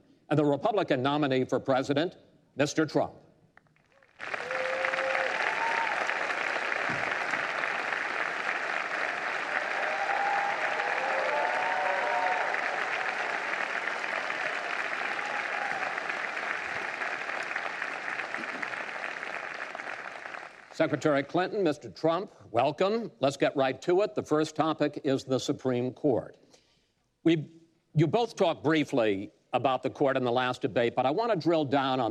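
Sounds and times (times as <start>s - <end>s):
speech: 0.3s - 3.2s, 20.8s - 26.5s, 27.2s - 32.0s
debate audience applauding the Democratic and Republican presidential nominees: 3.6s - 21.4s.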